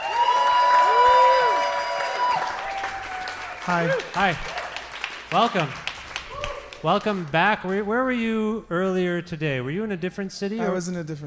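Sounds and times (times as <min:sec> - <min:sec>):
audience applause: 0:00.0 - 0:07.8
speech: 0:03.7 - 0:04.6, 0:05.3 - 0:05.9, 0:06.8 - 0:11.2.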